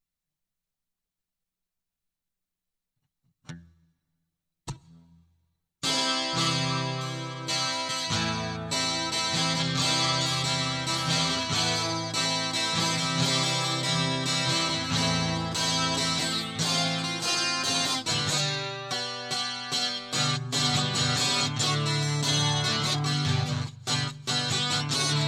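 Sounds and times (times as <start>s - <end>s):
guitar loop: 5.8s - 25.2s.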